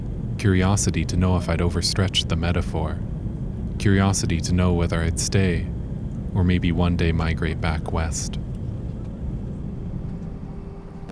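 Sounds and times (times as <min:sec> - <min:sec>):
airplane landing at an airport: 0:00.0 - 0:11.0
speech: 0:00.4 - 0:03.2, 0:03.8 - 0:08.5.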